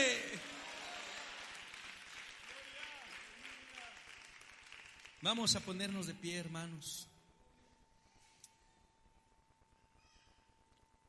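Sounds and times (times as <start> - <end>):
audience applause: 0.0 - 5.4
speech: 5.2 - 7.1.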